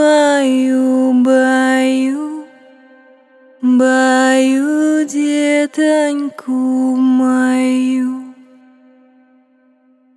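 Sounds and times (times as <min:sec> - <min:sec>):
person singing a Russian folk lullaby: 0:00.0 - 0:02.7, 0:03.6 - 0:08.5.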